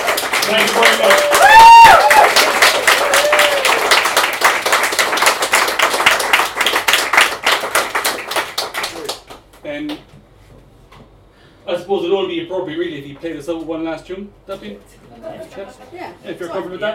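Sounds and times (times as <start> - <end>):
audience applause: 0.0 - 9.4
speech: 0.5 - 2.0, 11.9 - 16.9.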